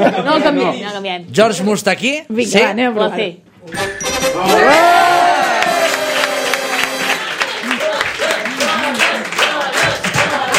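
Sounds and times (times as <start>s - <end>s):
speech: 0.0s - 4.9s
crowd chanting the name of their town, Blanes: 4.4s - 10.5s
scattered clapping: 5.4s - 10.5s.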